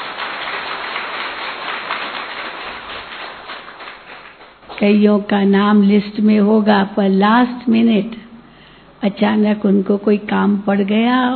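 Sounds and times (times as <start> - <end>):
crowd clapping: 0.0 - 4.8
speech: 4.8 - 8.2, 9.0 - 11.3.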